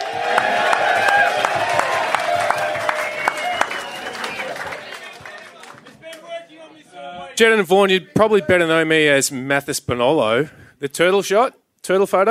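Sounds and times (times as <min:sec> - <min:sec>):
crowd applause: 0:00.0 - 0:06.4
crowd cheering: 0:00.0 - 0:07.4
speech: 0:07.4 - 0:12.2.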